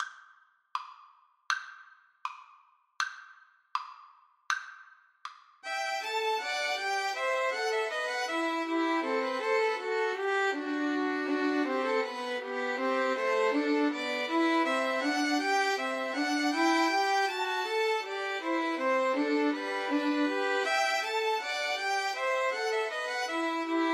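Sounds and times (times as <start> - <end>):
violin trio playing a bourree: 5.6 - 23.9.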